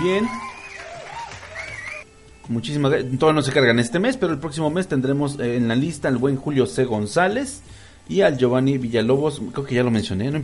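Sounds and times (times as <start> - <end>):
speech: 0.0 - 0.5, 2.5 - 10.4
applause: 0.0 - 2.1
whistles or cheers: 0.0 - 2.1.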